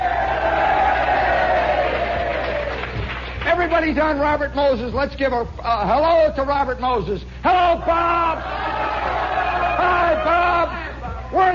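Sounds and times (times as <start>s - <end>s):
crowd cheering and shouting: 0.0s - 3.4s, 7.8s - 10.8s
speech: 3.7s - 8.6s, 9.8s - 11.5s.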